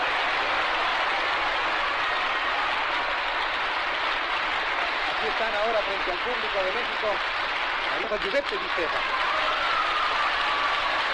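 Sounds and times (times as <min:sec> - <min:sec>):
applause from a large audience: 0:00.0 - 0:11.1
speech: 0:05.3 - 0:09.3.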